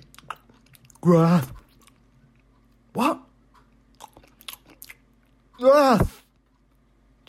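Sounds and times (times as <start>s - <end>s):
crunchy chewing while eating: 0.0s - 2.9s, 3.6s - 5.6s
speech: 1.0s - 1.6s, 3.0s - 3.2s, 5.6s - 6.1s.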